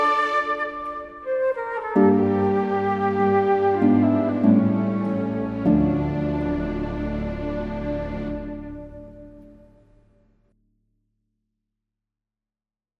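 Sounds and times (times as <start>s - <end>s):
orchestra: 0.0s - 9.9s.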